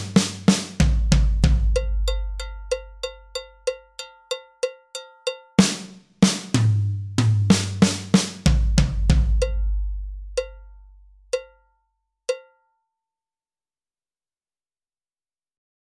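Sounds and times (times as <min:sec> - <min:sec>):
tom drums at 63 bpm: 0:00.0 - 0:03.5, 0:05.6 - 0:11.2.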